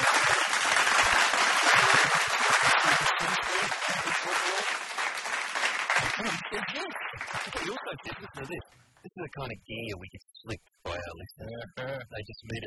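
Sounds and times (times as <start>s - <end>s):
laughter: 0.0s - 5.0s, 5.7s - 10.2s, 10.9s - 12.6s
crowd applause: 0.0s - 8.6s
speech: 9.2s - 12.6s.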